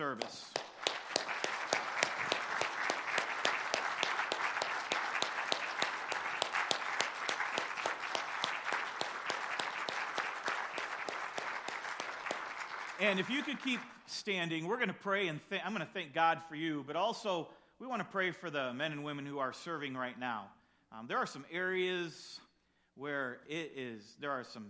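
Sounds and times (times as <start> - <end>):
speech: 0.1 - 0.5, 13.0 - 22.4, 23.0 - 24.6
audience applause: 0.4 - 14.0.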